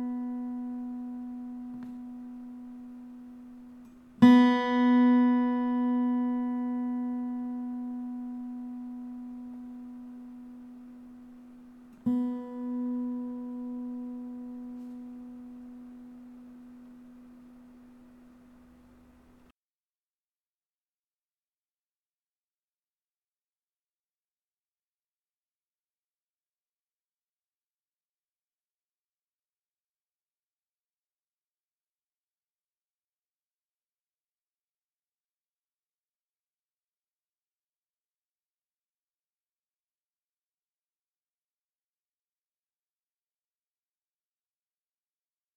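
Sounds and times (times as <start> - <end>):
acoustic guitar B string being tuned: 0.0 - 19.4.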